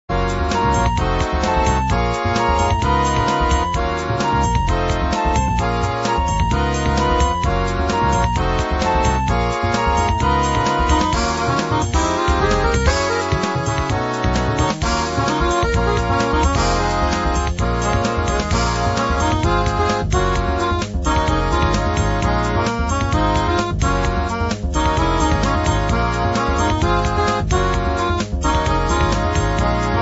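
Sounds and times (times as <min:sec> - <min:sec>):
acid jazz accordion remix: 0:00.0 - 0:29.9.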